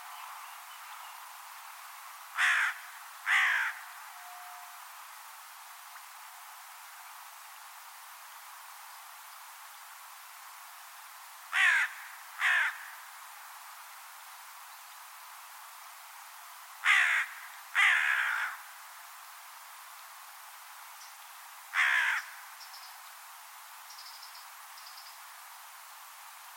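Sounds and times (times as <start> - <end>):
bird cawing: 2.4 - 3.9, 11.5 - 13.0, 16.8 - 18.6, 21.7 - 22.4.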